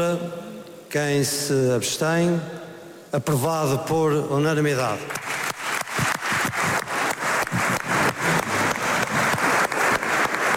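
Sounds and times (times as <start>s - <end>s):
speech: 0.0s - 5.3s
standing ovation from all parliamentary benches: 5.1s - 10.5s.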